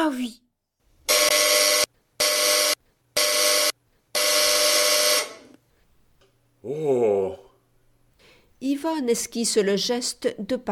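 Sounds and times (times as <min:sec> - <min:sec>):
speech: 0:00.0 - 0:00.4, 0:08.6 - 0:10.7
loud harsh electric buzzer ringing: 0:01.1 - 0:05.5.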